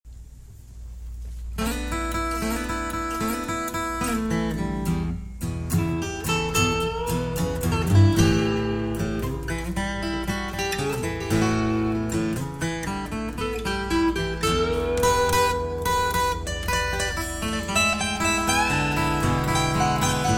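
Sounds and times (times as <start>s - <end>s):
blues music in E: 1.6s - 20.3s.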